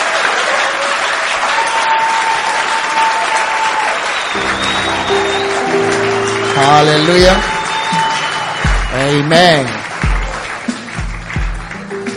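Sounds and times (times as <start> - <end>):
crowd applauding: 0.0 - 12.1
sustained low musical tones: 4.4 - 8.2
speech: 6.7 - 7.6, 9.0 - 9.8.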